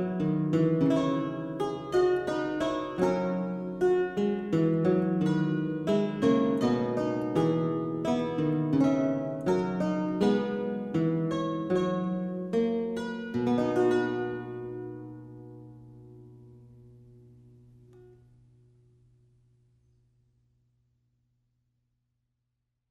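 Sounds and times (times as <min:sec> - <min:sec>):
German Lautenwerck playing an aria: 0:00.0 - 0:16.6.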